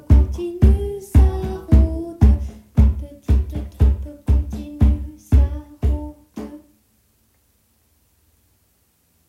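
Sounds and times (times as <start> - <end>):
percussion: 0.0 - 6.7.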